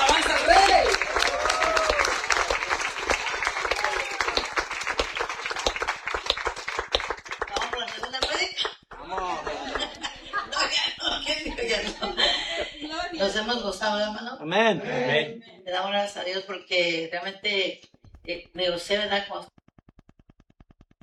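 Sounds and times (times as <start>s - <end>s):
loud sustained applause from audience: 0.0s - 10.6s
laughter: 8.5s - 13.2s
speech: 13.6s - 19.5s.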